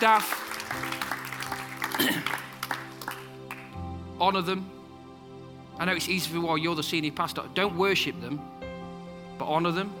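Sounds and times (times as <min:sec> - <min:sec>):
speech: 0:00.0 - 0:00.9, 0:04.2 - 0:04.8, 0:05.8 - 0:08.6, 0:09.4 - 0:09.9
audience clapping: 0:00.0 - 0:03.8.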